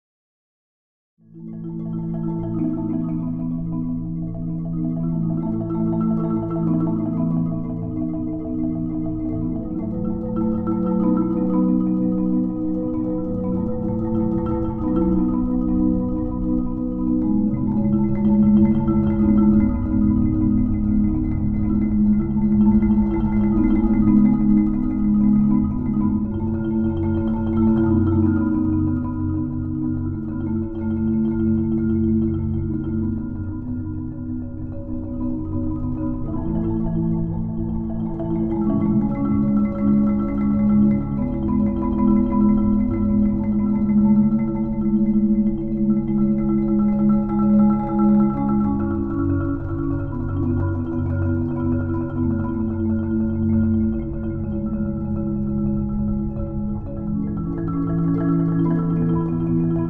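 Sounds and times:
marimba: 0:01.3 - 0:59.8.

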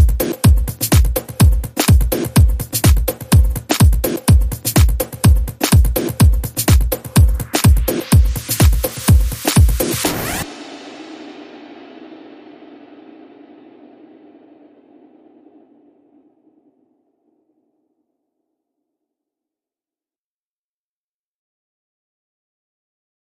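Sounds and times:
music beat: 0:00.0 - 0:15.7.

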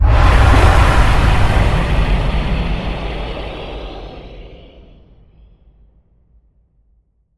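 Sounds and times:
dragon fire boom: 0:00.0 - 0:05.0.

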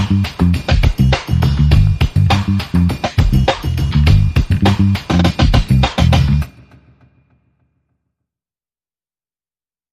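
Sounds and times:
funk drums: 0:00.0 - 0:07.1.

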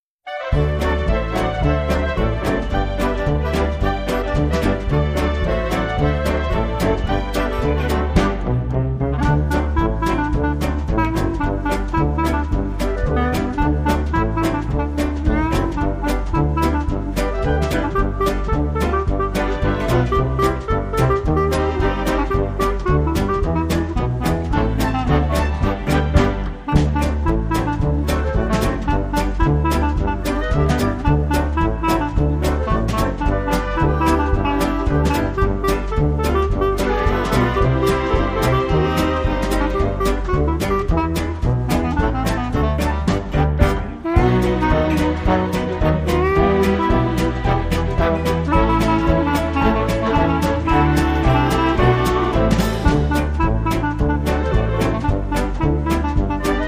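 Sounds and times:
clarinet: 0:00.2 - 0:56.6.

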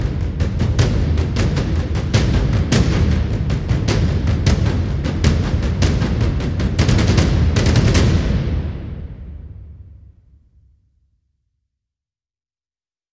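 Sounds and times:
low drums: 0:00.0 - 0:10.2.

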